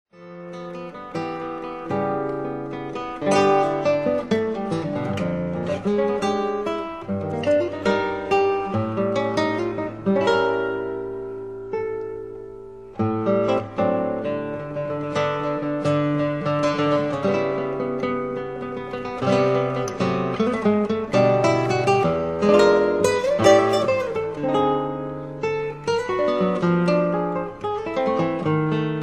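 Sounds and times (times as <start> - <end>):
guitar study: 0.2 - 29.0.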